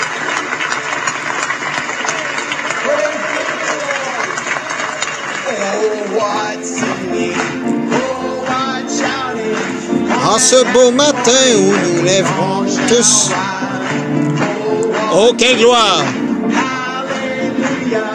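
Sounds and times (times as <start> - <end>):
audience applause: 0.0 - 18.1
speech: 10.3 - 13.6, 15.1 - 16.2.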